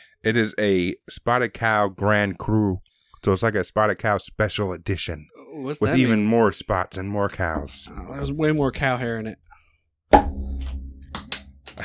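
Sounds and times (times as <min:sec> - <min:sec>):
speech: 0:00.2 - 0:09.5
cap bouncing and clattering: 0:10.2 - 0:11.8.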